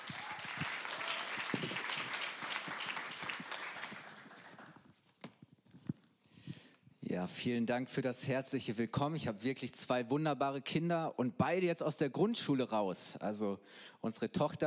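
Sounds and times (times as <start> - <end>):
audience applause: 0.0 - 4.8
speech: 7.2 - 14.6.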